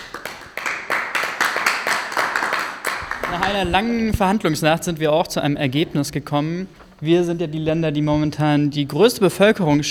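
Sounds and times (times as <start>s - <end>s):
audience applause: 0.0s - 3.7s
speech: 3.3s - 9.9s.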